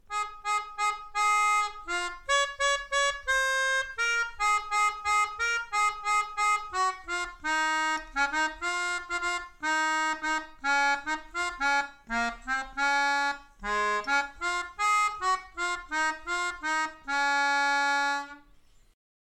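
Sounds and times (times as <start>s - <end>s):
melodica: 0.0s - 18.9s.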